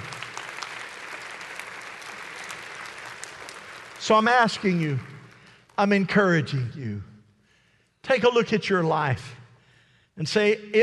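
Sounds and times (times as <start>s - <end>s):
audience clapping: 0.0s - 6.2s
speech: 4.0s - 5.1s, 5.8s - 7.1s, 8.0s - 9.4s, 10.2s - 10.8s.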